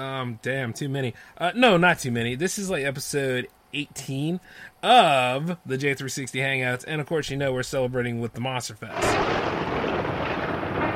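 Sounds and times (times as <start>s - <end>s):
speech: 0.0s - 9.6s
lightning and thunder sound effect: 8.9s - 10.9s.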